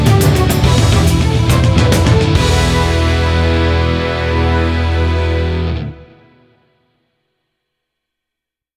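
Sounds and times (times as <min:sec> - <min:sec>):
orchestra playing: 0:00.0 - 0:06.3.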